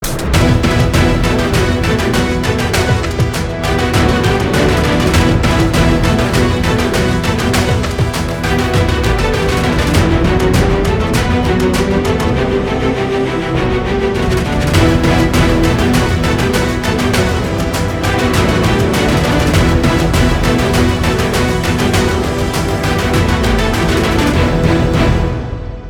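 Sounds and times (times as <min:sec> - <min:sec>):
fight background music ringtone: 0:00.0 - 0:25.8.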